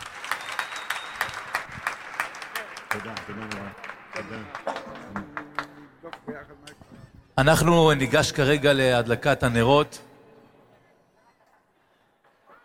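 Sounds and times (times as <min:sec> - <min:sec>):
audience applause: 0:00.0 - 0:06.4
speech: 0:03.0 - 0:10.1.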